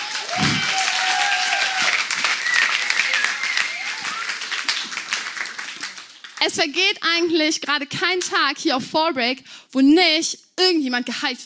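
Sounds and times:
audience applause: 0.0 - 6.4
speech: 6.4 - 11.4.

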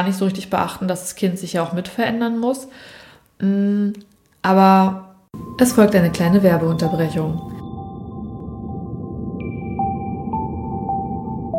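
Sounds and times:
speech: 0.0 - 7.6
calm relaxing ambient music with echoing tones: 5.4 - 11.5.

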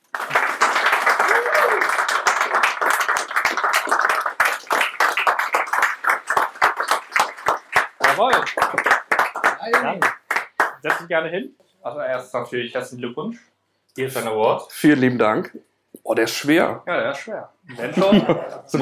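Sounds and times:
audience applause: 0.0 - 11.0
speech: 10.8 - 18.8
laughter: 17.7 - 18.8.

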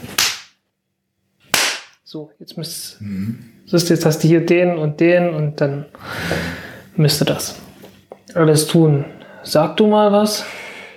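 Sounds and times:
single hand clap: 0.0 - 0.6, 1.5 - 2.0
speech: 2.1 - 7.6, 8.4 - 10.6.

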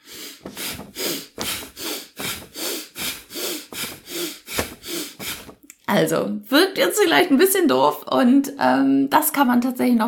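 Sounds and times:
rapid rhythmic breathing while quickly raising and lowering the arms in an exercise: 0.0 - 5.6
speech: 5.9 - 10.0.

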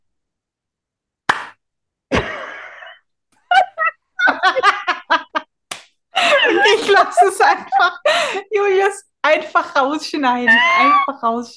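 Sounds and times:
hand claps: 1.3 - 1.6, 5.7 - 6.0
giggling laughter: 2.1 - 5.5, 6.2 - 8.4, 10.5 - 11.2
speech: 7.0 - 11.5.

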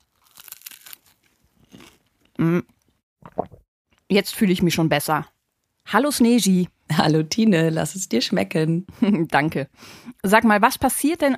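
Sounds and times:
biting into a bread roll: 0.0 - 2.2
speech: 2.4 - 2.7, 4.1 - 11.3.

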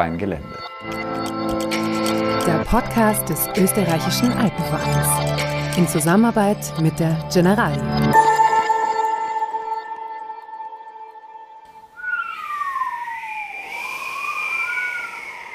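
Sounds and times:
speech: 0.0 - 1.8, 2.4 - 8.3
sustained tonal chord: 0.8 - 14.0
wind howling over snowy terrain: 11.7 - 15.5.

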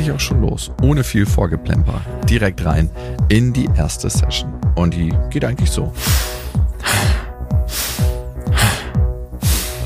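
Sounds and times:
speech: 0.0 - 6.4
steady thumping music beat: 0.0 - 9.8
rapid hyperventilating breaths during a breathwork session: 1.8 - 2.3, 2.9 - 3.3, 5.9 - 9.8.

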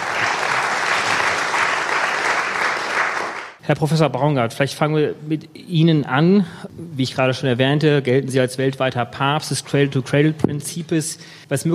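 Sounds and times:
audience applause at a panel event on the circular economy: 0.0 - 3.6
speech: 3.7 - 11.7.

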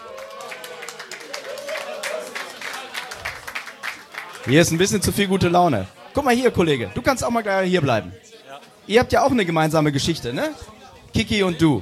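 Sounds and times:
audience applause: 0.0 - 5.0
speech: 4.4 - 8.2, 8.9 - 11.8.

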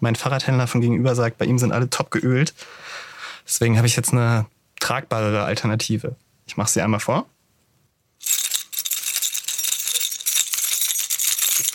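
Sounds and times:
speech: 0.0 - 7.3
small bunch of keys jingling: 8.2 - 11.7.

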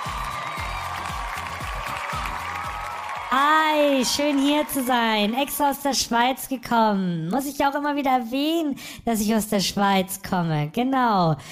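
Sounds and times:
audience applause: 0.0 - 5.8
speech: 3.3 - 11.4.

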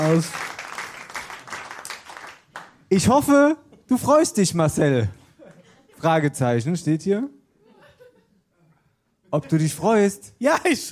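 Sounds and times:
speech: 0.0 - 0.5, 2.9 - 5.2, 6.0 - 7.4, 9.3 - 10.8
audience applause: 0.0 - 2.7
laughter: 5.2 - 6.1, 7.6 - 8.7.

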